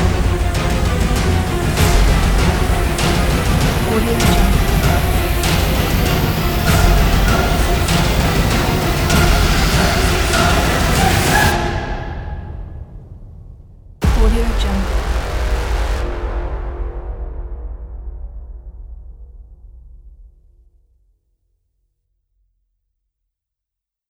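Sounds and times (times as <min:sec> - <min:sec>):
horror movie trailer: 0:00.0 - 0:20.6.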